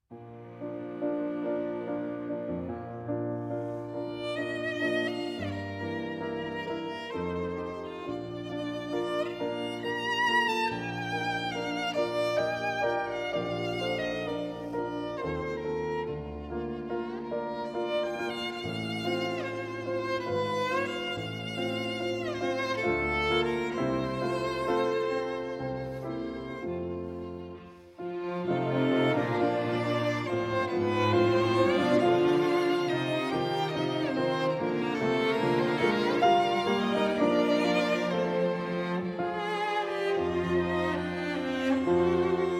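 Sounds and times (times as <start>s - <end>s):
piano quintet: 0.1s - 42.5s.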